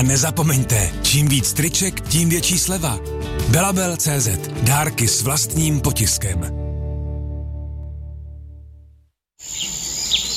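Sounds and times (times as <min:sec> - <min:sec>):
speech: 0:00.0 - 0:06.6
birdsong: 0:09.4 - 0:10.3
forest ambience: 0:09.4 - 0:10.3.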